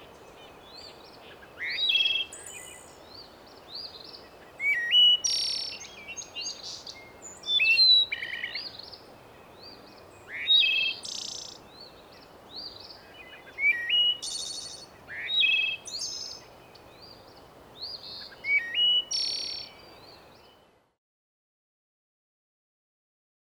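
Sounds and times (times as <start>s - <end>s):
bird whistled song with buzzy phrases: 1.5s - 3.2s, 4.6s - 9.0s, 9.6s - 12.0s, 12.6s - 17.2s, 17.8s - 20.6s.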